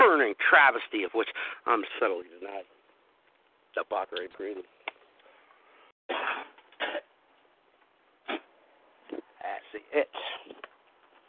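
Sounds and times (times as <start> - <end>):
speech: 0.3 - 2.8, 3.7 - 4.8, 9.4 - 10.6
harsh dry coughs: 6.1 - 7.1.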